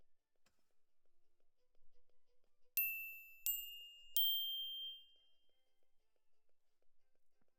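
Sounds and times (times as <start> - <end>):
glockenspiel: 2.8 - 5.5.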